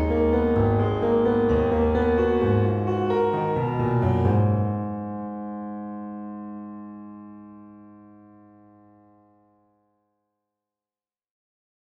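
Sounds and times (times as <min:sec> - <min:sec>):
uneasy piano: 0:00.0 - 0:08.9.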